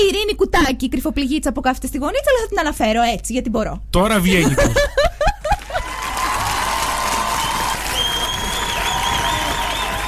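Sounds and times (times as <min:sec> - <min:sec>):
speech: 0:00.0 - 0:05.3
laughter: 0:04.4 - 0:06.1
live studio audience applauding and cheering: 0:05.6 - 0:10.0.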